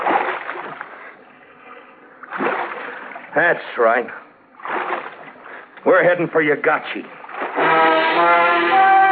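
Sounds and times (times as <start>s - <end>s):
paddle strokes splashing through water: 0.0s - 1.3s, 2.2s - 3.8s, 4.6s - 5.9s, 7.1s - 9.0s
water lapping: 0.0s - 6.3s, 7.0s - 9.0s
speech: 3.4s - 4.2s, 5.8s - 7.2s, 8.0s - 8.9s.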